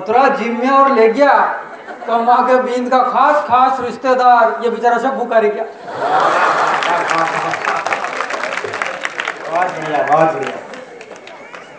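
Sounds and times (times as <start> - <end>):
speech: 0.0 - 7.4, 9.8 - 10.6
laughter: 1.5 - 2.6, 5.8 - 11.7
audience clapping: 6.2 - 11.7.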